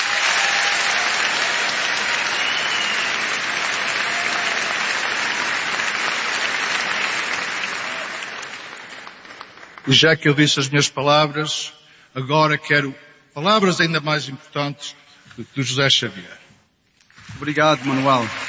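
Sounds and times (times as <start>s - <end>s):
audience applause: 0.0s - 10.0s, 17.4s - 18.4s
speech: 9.9s - 16.4s, 17.4s - 18.4s.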